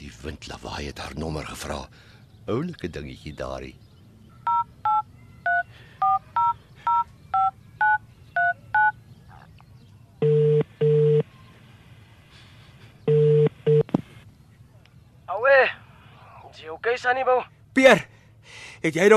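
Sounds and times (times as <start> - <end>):
speech: 0.2 - 3.8, 16.9 - 18.1, 18.8 - 19.1
phone keypad beeps dialing a number: 4.5 - 8.9, 10.2 - 11.2
longer, buzzy phone tones: 10.2 - 11.3, 13.1 - 13.9.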